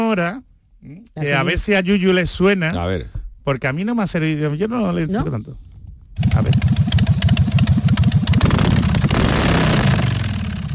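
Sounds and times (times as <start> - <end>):
speech: 0.1 - 6.7
Harley-Davidson motorcycle engine idling and roaring: 6.2 - 10.7.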